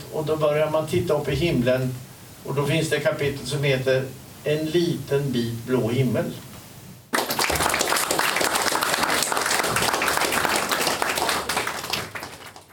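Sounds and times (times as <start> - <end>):
speech: 0.1 - 6.5
audience applause: 7.1 - 12.7.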